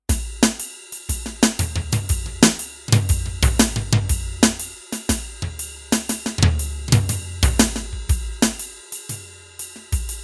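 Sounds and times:
groove music: 0.1 - 10.2.

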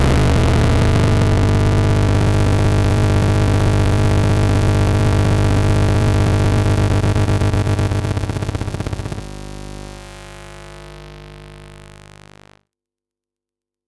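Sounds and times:
ring modulator effect: 0.0 - 9.5.

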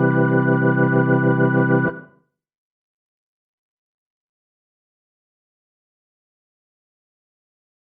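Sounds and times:
Korg Grandstage Jimmy organ: 0.0 - 2.2.

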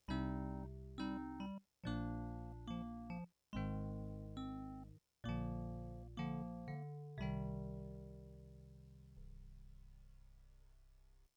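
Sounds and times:
digital piano: 0.0 - 10.0.

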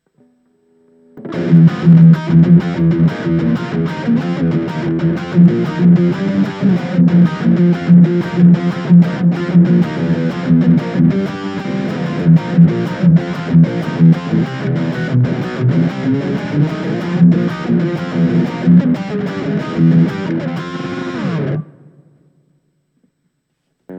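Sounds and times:
distortion: 0.0 - 23.9.

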